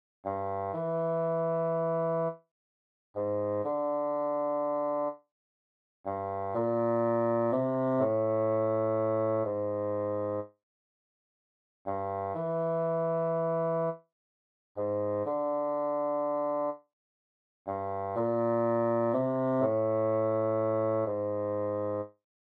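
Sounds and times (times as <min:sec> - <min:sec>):
bassoon: 0:00.3 - 0:02.4, 0:03.2 - 0:05.2, 0:06.1 - 0:10.5, 0:11.9 - 0:14.0, 0:14.8 - 0:16.8, 0:17.7 - 0:22.2.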